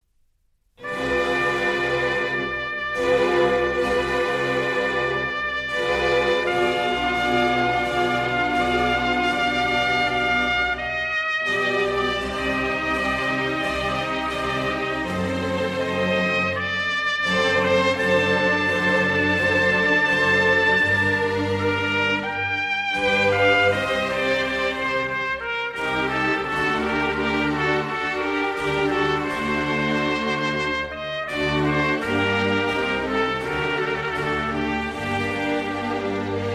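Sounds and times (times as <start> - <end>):
oboe concerto in C minor, Grave movement: 0.8 - 36.5.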